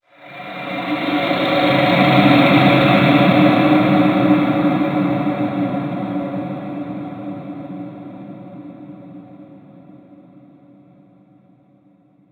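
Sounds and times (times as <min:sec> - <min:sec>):
ethereal graveyard environment stinger: 0:00.1 - 0:06.7.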